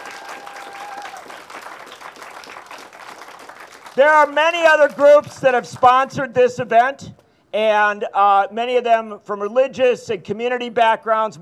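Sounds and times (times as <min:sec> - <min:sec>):
audience clapping: 0:00.0 - 0:06.0
speech: 0:04.0 - 0:11.4.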